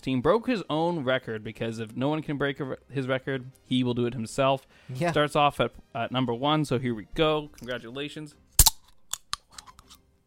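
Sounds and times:
speech: 0:00.0 - 0:08.4
Red Bull can being opened: 0:08.6 - 0:10.0.

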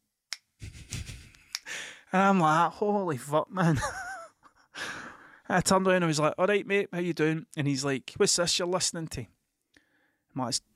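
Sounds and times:
finger snap: 0:00.3 - 0:00.6, 0:01.3 - 0:01.7
speech: 0:02.1 - 0:04.0, 0:05.5 - 0:09.4, 0:10.4 - 0:10.7.

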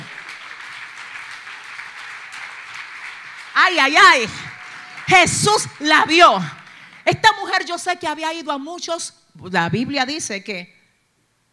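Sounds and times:
applause: 0:00.0 - 0:07.9
speech: 0:03.6 - 0:04.4, 0:05.1 - 0:10.8.

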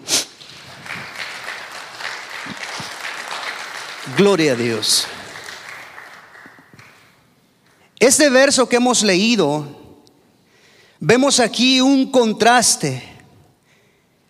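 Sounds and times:
audience applause: 0:00.4 - 0:07.2
speech: 0:04.1 - 0:05.2, 0:08.0 - 0:09.8, 0:11.0 - 0:13.1.

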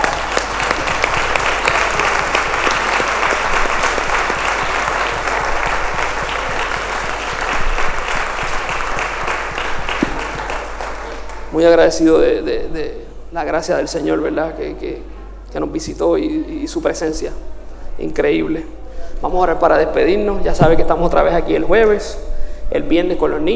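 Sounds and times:
crowd applauding: 0:00.0 - 0:12.1
speech: 0:11.6 - 0:23.5.

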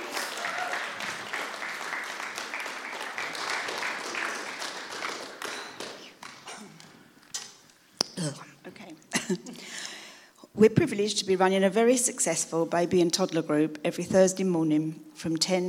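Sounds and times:
crowd applauding: 0:00.0 - 0:07.0
speech: 0:08.2 - 0:08.5, 0:10.6 - 0:15.6.

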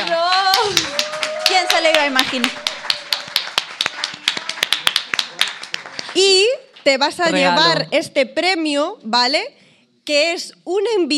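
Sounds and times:
small group clapping: 0:00.0 - 0:06.8
speech: 0:01.8 - 0:02.6, 0:06.2 - 0:11.1.

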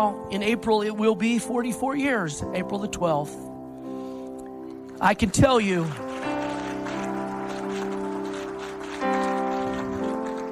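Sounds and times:
speech: 0:00.0 - 0:03.5, 0:05.0 - 0:06.1
organ-like chords: 0:00.0 - 0:10.5
audience applause: 0:04.9 - 0:10.5.

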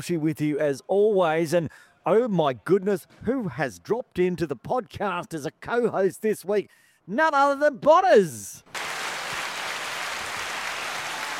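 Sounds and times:
speech: 0:00.0 - 0:08.8
crowd applause: 0:08.7 - 0:11.3.

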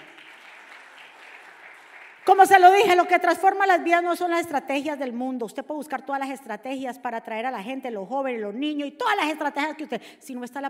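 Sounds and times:
audience applauding: 0:00.0 - 0:02.8
speech: 0:02.3 - 0:10.6.

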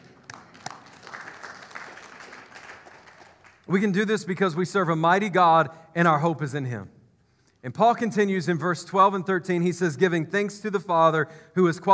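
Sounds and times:
audience clapping: 0:00.0 - 0:03.7
speech: 0:03.7 - 0:07.0, 0:07.6 - 0:11.9.

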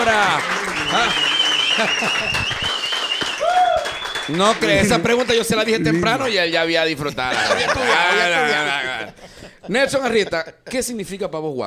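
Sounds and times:
speech: 0:00.0 - 0:02.7, 0:04.3 - 0:11.6
audience applause: 0:00.0 - 0:06.2
laughter: 0:00.4 - 0:02.9, 0:04.4 - 0:06.5, 0:07.1 - 0:10.9.

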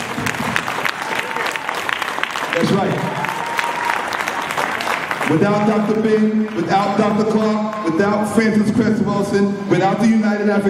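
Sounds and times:
round of applause: 0:00.0 - 0:07.9
speech: 0:02.6 - 0:03.2, 0:05.3 - 0:10.6.

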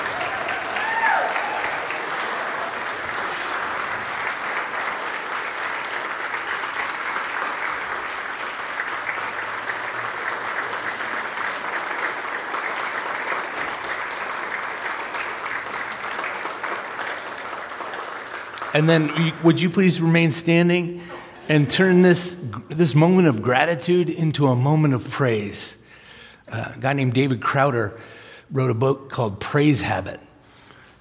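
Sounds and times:
audience applause: 0:00.0 - 0:19.8
speech: 0:18.8 - 0:25.8, 0:26.5 - 0:30.3.

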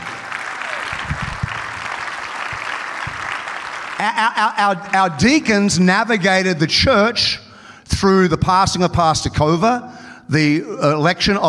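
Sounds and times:
audience clapping: 0:00.0 - 0:05.2
speech: 0:04.0 - 0:07.4, 0:08.0 - 0:11.4.

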